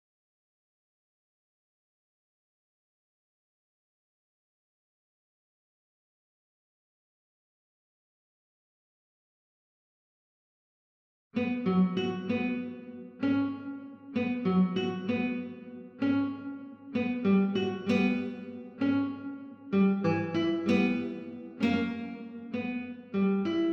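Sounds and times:
guitar: 11.4 - 23.7.

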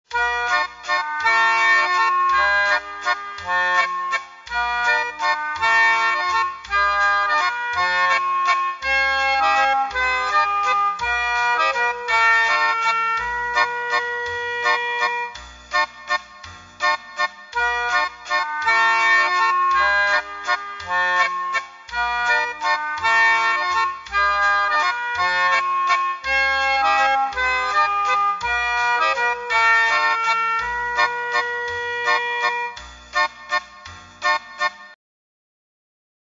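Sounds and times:
accordion music: 0.1 - 35.0.

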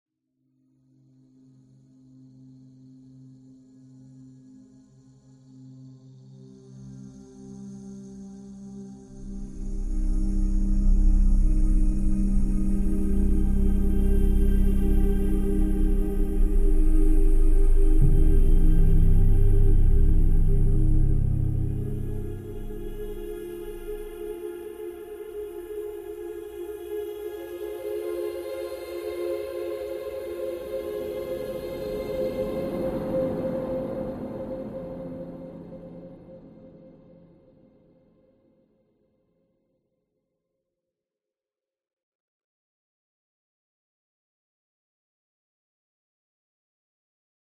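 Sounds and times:
ambient music: 6.5 - 37.2.

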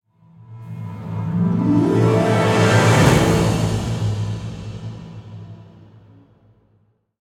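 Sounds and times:
boss intro music stinger: 0.8 - 5.0.

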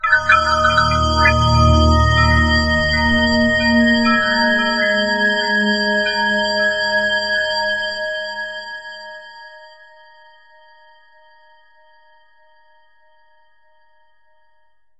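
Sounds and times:
crafting background music: 0.0 - 8.5.

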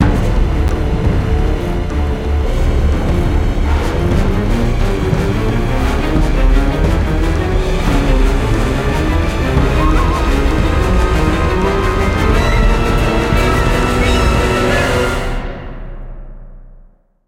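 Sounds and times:
terror music sting: 0.1 - 15.6.

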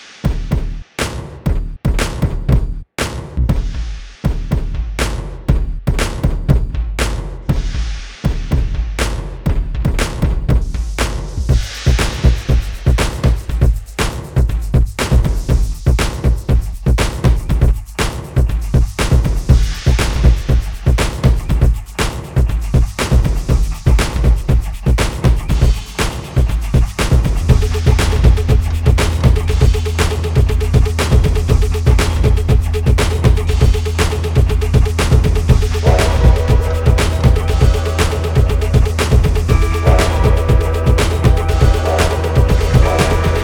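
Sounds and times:
train drums: 0.0 - 43.4.

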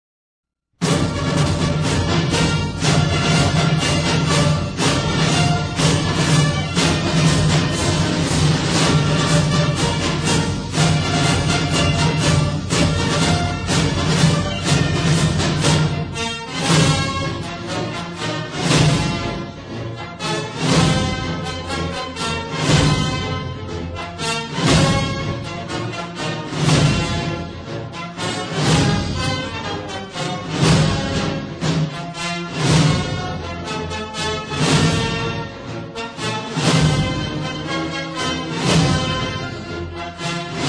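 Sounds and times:
march music: 0.8 - 40.6.

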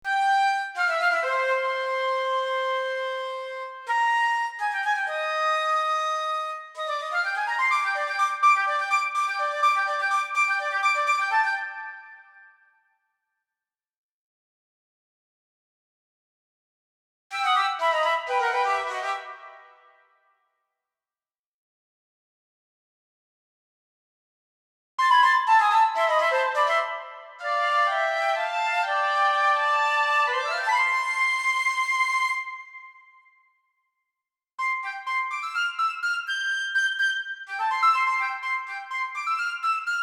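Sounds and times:
flute: 0.0 - 12.8, 17.3 - 20.2, 25.0 - 33.6, 34.6 - 40.0.

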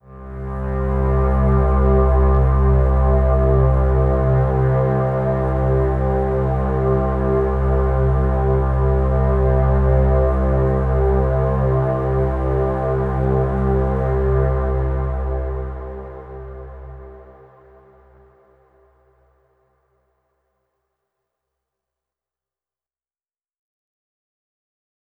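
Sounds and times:
downtown overlay drone: 0.0 - 18.5.

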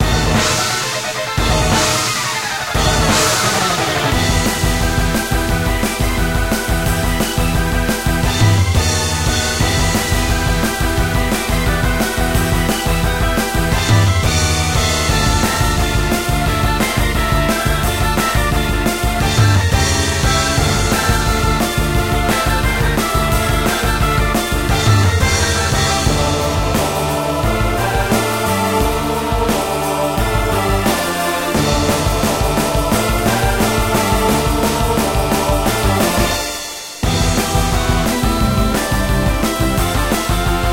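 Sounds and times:
tense music: 0.0 - 40.7.

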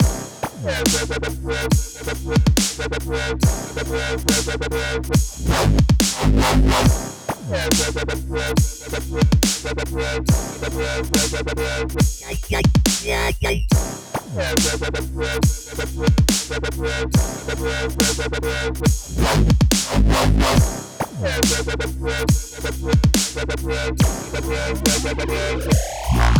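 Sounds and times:
intense dubstep music: 0.0 - 26.3.

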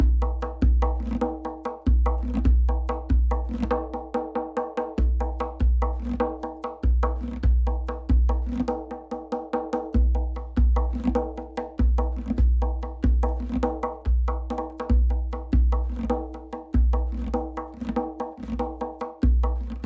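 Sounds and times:
tombak drum riff: 0.0 - 19.8.

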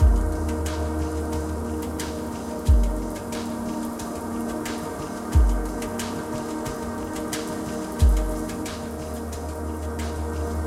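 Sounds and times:
tunnel ambience: 0.0 - 10.6.

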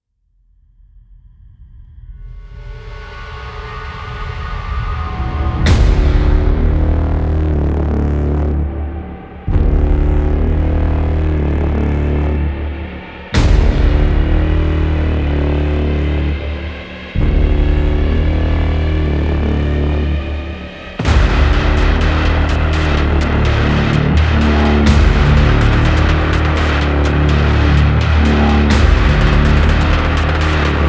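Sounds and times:
main ambience: 2.5 - 30.8.

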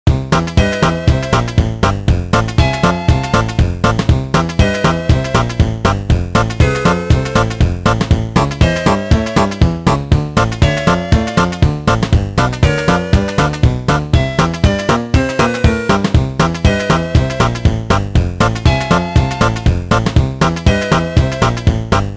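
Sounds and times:
upbeat map screen music: 0.1 - 22.1.

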